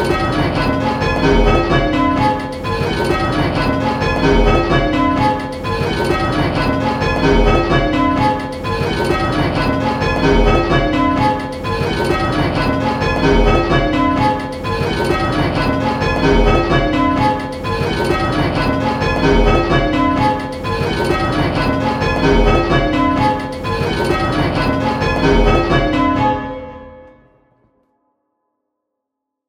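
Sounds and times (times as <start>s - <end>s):
pentatonic bells: 0.0s - 27.0s.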